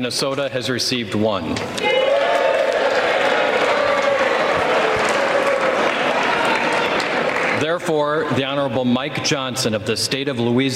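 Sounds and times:
speech: 0.0s - 2.0s, 7.6s - 10.7s
scattered cheers: 1.8s - 7.6s
applause on the House floor: 1.8s - 7.8s.

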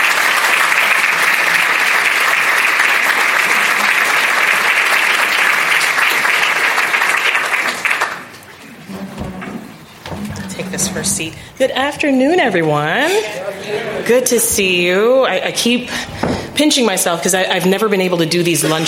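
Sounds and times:
audience applause: 0.0s - 9.5s
speech: 11.0s - 18.8s.

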